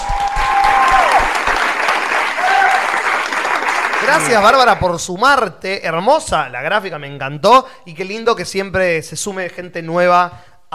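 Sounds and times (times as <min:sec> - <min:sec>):
applause sound effect: 0:00.0 - 0:04.9
speech: 0:04.1 - 0:10.7.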